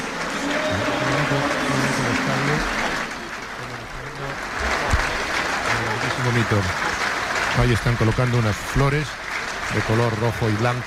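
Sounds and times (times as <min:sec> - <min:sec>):
large stadium crowd applauding in tribute: 0:00.0 - 0:10.8
speech: 0:06.4 - 0:07.0, 0:07.6 - 0:10.8.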